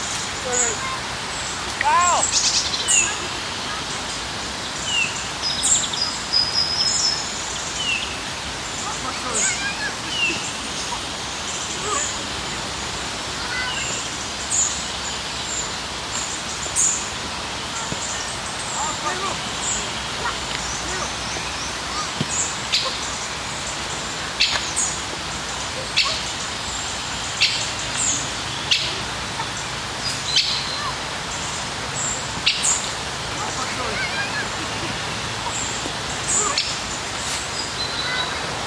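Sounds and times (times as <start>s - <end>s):
bird chirps and calls in a park: 0.0s - 38.6s
steady hiss of background noise in a park: 0.0s - 38.6s
faint voices murmuring: 8.5s - 14.4s, 17.4s - 38.6s.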